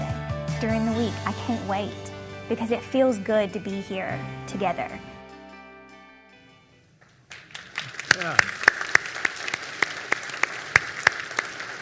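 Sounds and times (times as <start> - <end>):
speech: 0.6 - 5.1, 8.2 - 8.5
audience applause: 7.3 - 11.8.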